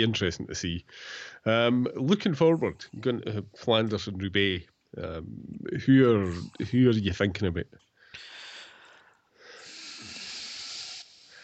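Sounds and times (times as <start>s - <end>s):
speech: 0.0s - 8.3s
sharp intake of breath: 8.2s - 11.4s.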